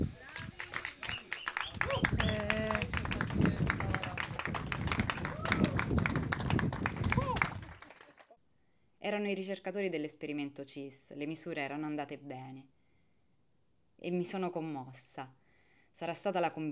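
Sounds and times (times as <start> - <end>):
excited voices calling out and chattering: 0.0 - 6.0, 7.0 - 8.0
group applauding: 0.0 - 8.4
speech: 9.1 - 12.8, 14.0 - 15.4, 16.0 - 16.7.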